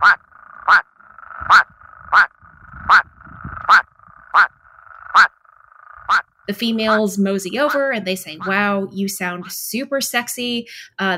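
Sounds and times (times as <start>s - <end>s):
plain spadefoot toads giving short quacking calls: 0.0s - 8.7s
speech: 6.5s - 11.1s.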